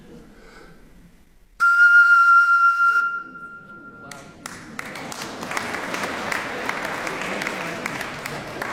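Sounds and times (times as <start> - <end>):
blowing across the mouth of a water-filled bottle: 1.6 - 3.8
audience applause: 4.4 - 8.7.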